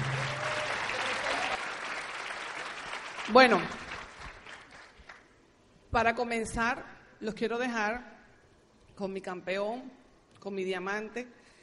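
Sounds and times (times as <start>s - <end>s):
crowd applause: 0.0s - 5.2s
speech: 3.3s - 3.8s, 5.9s - 8.1s, 9.0s - 11.4s.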